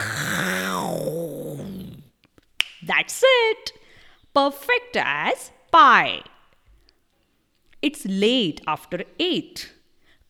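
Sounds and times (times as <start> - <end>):
person roaring like a lion: 0.0 - 2.1
speech: 2.9 - 3.8, 4.4 - 6.3, 7.8 - 9.8.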